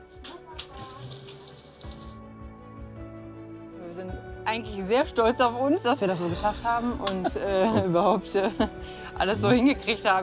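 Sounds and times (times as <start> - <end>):
water gushing from a camper kitchen tap: 0.6 - 2.2
speech: 4.0 - 10.2.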